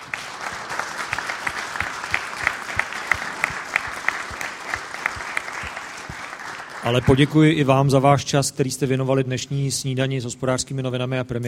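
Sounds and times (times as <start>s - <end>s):
audience applause: 0.0s - 8.0s
speech: 6.9s - 11.4s.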